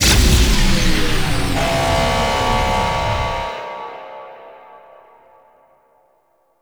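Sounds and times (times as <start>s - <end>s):
success stinger: 0.0s - 4.3s.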